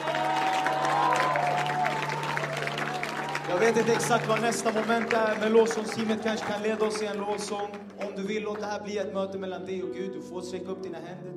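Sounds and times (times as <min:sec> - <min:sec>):
audience clapping: 0:00.0 - 0:08.8
speech: 0:03.5 - 0:11.3.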